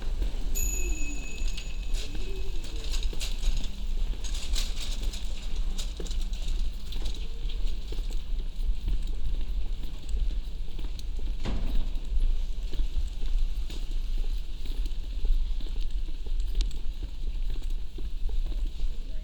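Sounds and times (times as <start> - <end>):
street sounds on Queen's Lane and New College Lane: 0.0 - 16.4
footsteps on a walk up Queen's Lane and New College Lane: 0.0 - 19.2
high tone: 0.5 - 3.0.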